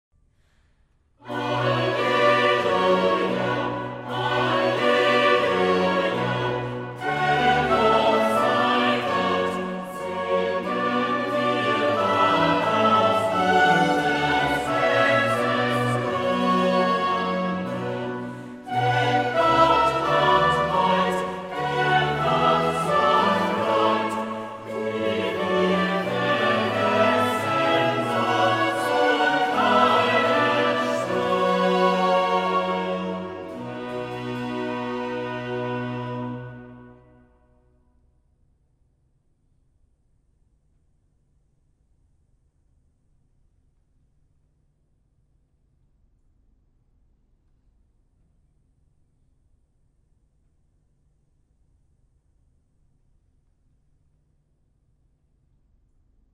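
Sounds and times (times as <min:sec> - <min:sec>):
choir singing a cantata: 0:01.2 - 0:37.3.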